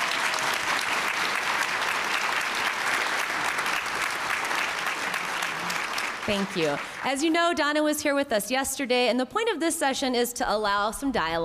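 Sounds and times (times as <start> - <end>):
audience applause in Denver: 0.0 - 7.4
speech: 6.3 - 11.4.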